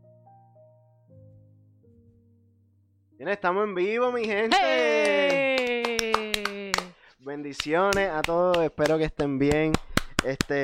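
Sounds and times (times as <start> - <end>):
speech: 3.2 - 5.9, 7.3 - 10.6
hand clapping: 4.5 - 10.6.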